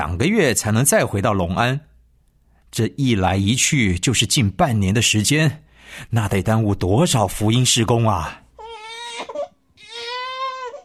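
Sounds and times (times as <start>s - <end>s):
speech: 0.0s - 1.9s, 2.7s - 8.4s
newborn baby crying: 8.6s - 10.8s.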